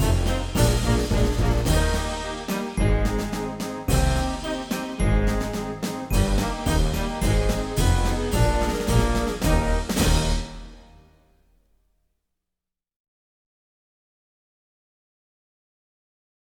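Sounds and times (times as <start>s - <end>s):
march music: 0.0s - 11.2s.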